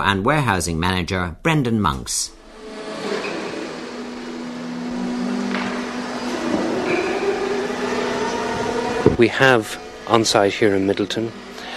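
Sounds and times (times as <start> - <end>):
speech: 0.0 - 2.4, 9.1 - 11.5
forklift truck humming and whirring in a warehouse: 2.4 - 11.7.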